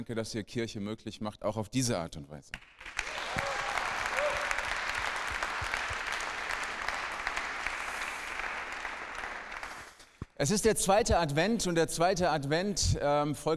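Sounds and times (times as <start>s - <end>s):
speech: 0.0s - 2.9s, 10.4s - 13.5s
audience applause: 2.6s - 10.0s.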